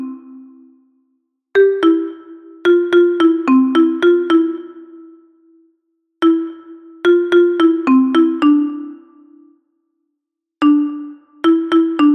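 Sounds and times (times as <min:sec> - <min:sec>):
alto xylophone playing rumba: 0:01.6 - 0:05.0, 0:06.2 - 0:09.0, 0:10.6 - 0:12.1.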